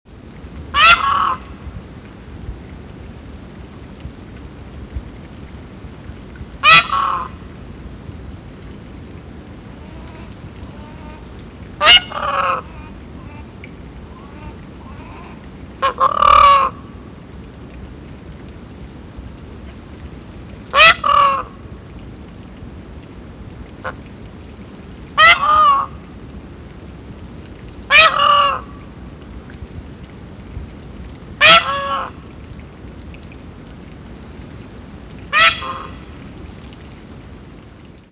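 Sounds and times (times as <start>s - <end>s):
peahen calling softly: 0.5s - 1.6s, 6.2s - 7.5s, 9.8s - 16.8s, 25.2s - 26.1s, 27.9s - 28.8s, 31.4s - 32.2s, 35.3s - 36.7s.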